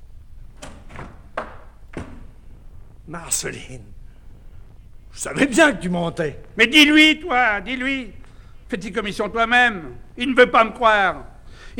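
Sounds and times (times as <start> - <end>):
door being opened: 0.4 - 2.8
speech: 3.1 - 4.0, 5.2 - 11.7.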